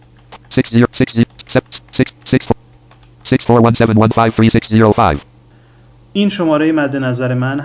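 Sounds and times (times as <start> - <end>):
computer keyboard typing a phone number into a conference-call form: 0.4 - 5.2
speech: 0.5 - 2.5, 3.3 - 5.3, 6.1 - 7.6.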